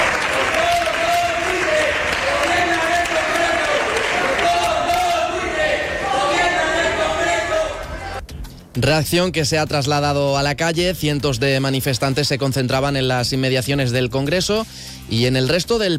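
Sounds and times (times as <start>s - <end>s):
scattered clapping: 0.0s - 5.9s
dense crowd din in a parliament chamber: 0.0s - 8.2s
many voices shouting in a parliament chamber: 0.0s - 8.2s
speech: 8.8s - 15.9s.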